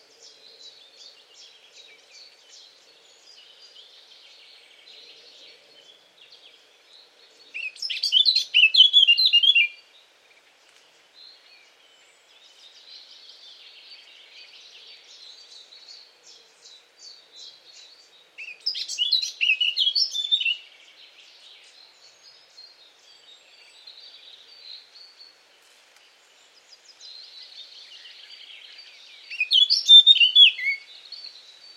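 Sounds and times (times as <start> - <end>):
Eurasian blackcap warbling song: 7.6 - 9.9, 17.0 - 25.2, 26.6 - 31.7.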